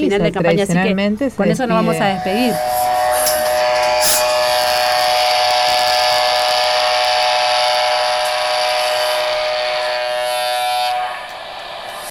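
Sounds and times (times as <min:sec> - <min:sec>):
speech: 0:00.0 - 0:02.9
icebreaker ship's horn blowing farewell: 0:01.7 - 0:12.0.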